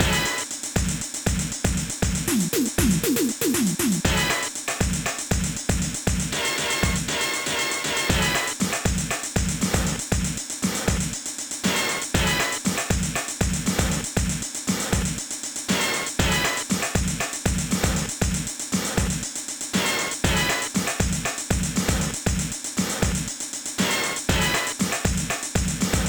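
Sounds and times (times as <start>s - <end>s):
dynamic funk drums: 0.0s - 26.0s.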